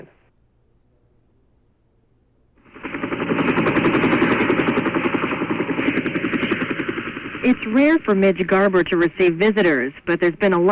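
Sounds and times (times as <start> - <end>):
helicopter arriving: 2.6 - 10.6
speech: 7.4 - 10.6.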